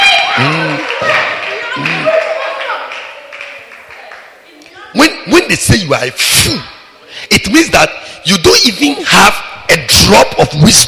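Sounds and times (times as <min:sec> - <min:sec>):
audience clapping: 0:00.3 - 0:04.4
speech: 0:00.4 - 0:02.2, 0:05.5 - 0:10.8.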